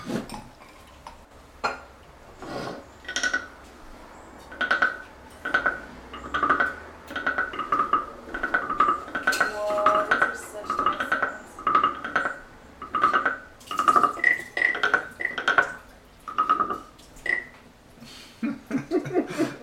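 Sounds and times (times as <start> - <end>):
frog-like souvenir noisemaker rasping: 2.5 - 3.7, 4.3 - 17.6
laughter: 18.4 - 19.6.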